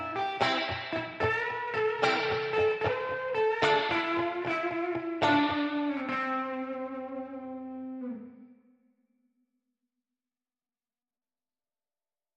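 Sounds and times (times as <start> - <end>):
guitar: 0.0 - 8.7.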